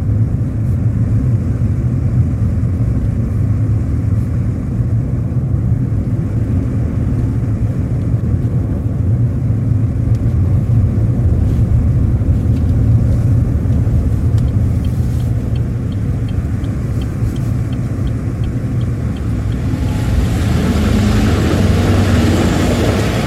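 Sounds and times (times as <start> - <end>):
car driving, engine rumble: 0.0 - 23.2.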